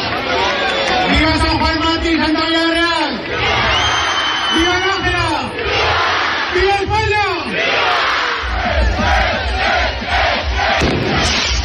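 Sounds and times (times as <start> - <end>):
crowd cheering: 0.0 - 11.6
festival rocket launch from town hall balcony: 10.8 - 11.6.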